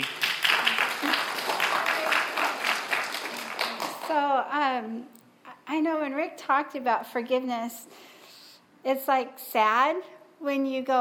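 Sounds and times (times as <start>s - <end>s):
audience applause welcoming a woman speaker at a morning gathering: 0.0s - 4.1s
speech: 4.4s - 8.1s, 8.8s - 10.9s.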